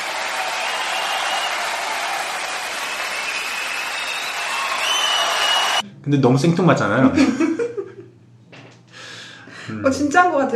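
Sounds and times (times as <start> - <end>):
canned laughter and applause sound effect: 0.0 - 5.8
speech: 6.1 - 7.5, 9.8 - 10.5.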